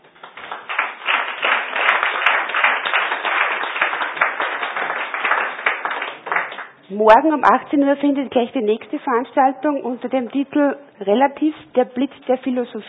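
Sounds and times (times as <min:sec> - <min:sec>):
audience applause: 0:00.0 - 0:06.8
speech: 0:06.9 - 0:12.8.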